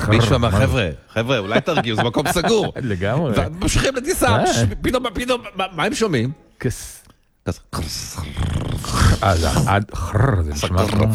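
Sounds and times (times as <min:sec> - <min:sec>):
laughter: 0:00.0 - 0:04.7
speech: 0:00.0 - 0:11.1
voice imitating a fart: 0:08.2 - 0:11.1.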